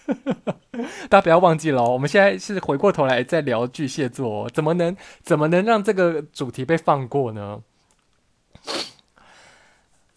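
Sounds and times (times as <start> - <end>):
speech: 0.2 - 7.7
nose blowing and sniffing: 8.6 - 9.0.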